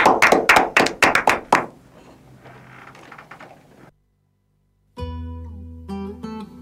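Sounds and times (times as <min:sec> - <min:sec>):
studio crowd applause: 0:00.0 - 0:01.9.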